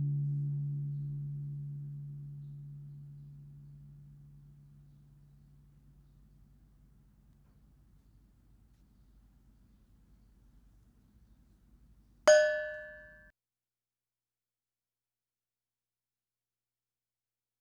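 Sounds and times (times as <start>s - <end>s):
gongs: 0.0s - 5.6s, 12.3s - 13.2s.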